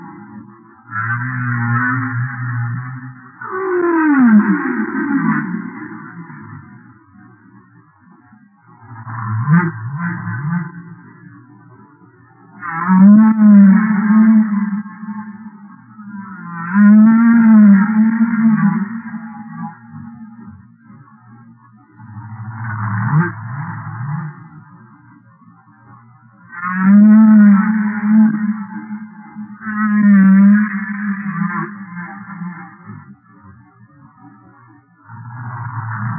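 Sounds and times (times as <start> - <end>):
humpback whale moaning calls: 0.9 - 5.8, 12.6 - 20.4, 26.5 - 32.7.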